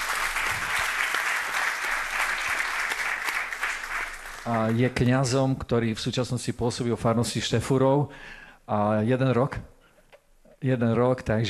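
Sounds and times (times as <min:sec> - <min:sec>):
audience applauding: 0:00.0 - 0:05.0
speech: 0:04.4 - 0:09.7, 0:10.6 - 0:11.4.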